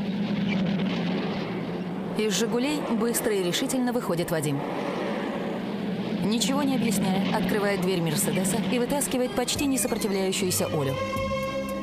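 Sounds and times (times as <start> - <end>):
trucks driving past: 0.0 - 10.0
speech: 2.2 - 5.0, 6.2 - 11.3.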